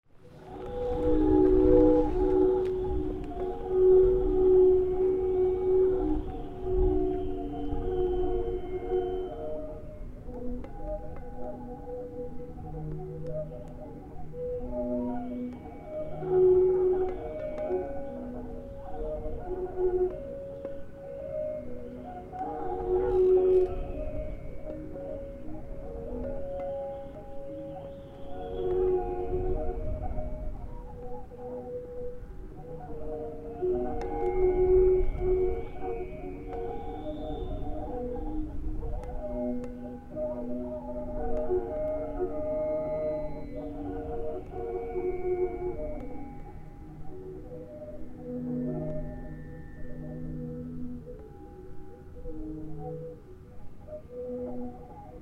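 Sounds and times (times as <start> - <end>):
northwest wind: 0.0 - 55.2.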